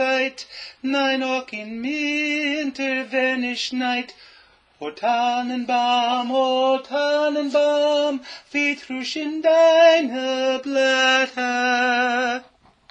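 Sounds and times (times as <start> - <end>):
tenor voice singing a Christmas carol: 0.0 - 4.2, 4.8 - 12.5.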